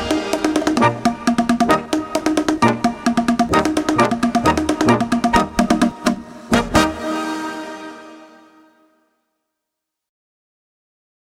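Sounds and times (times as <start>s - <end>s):
boomwhacker: 0.0s - 7.0s.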